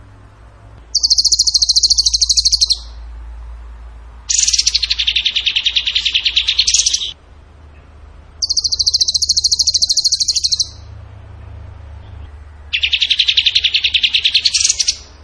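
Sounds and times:
Tembakan bird trilling: 0:00.9 - 0:03.0, 0:04.3 - 0:07.2, 0:08.4 - 0:10.9, 0:12.0 - 0:15.2.

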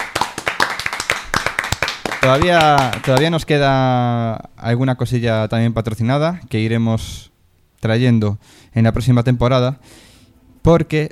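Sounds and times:
audience applause in a studio: 0:00.0 - 0:03.3
speech: 0:02.2 - 0:11.1.

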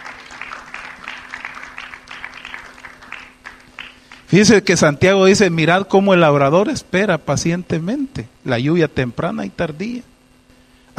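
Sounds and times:
audience applauding: 0:00.0 - 0:04.3
speech: 0:04.3 - 0:10.1.

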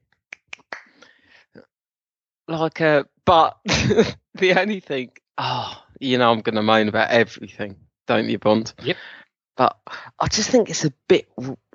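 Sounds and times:
sharp hand claps: 0:00.3 - 0:01.1
speech: 0:02.5 - 0:11.6.

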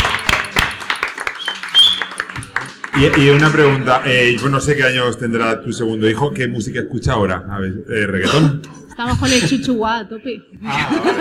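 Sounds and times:
audience applause: 0:00.0 - 0:04.6
speech: 0:03.0 - 0:11.1
laughter: 0:10.6 - 0:11.1.

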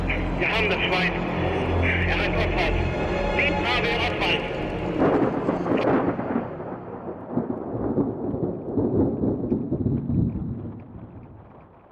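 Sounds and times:
speech: 0:00.4 - 0:01.3, 0:02.4 - 0:04.6
thunder rumbling: 0:02.8 - 0:11.8.

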